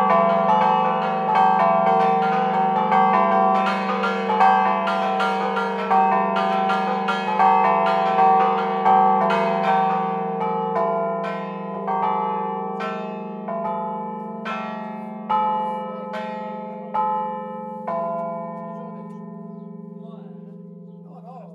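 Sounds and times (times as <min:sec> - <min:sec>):
bells ringing in Brischis: 0:00.0 - 0:21.5.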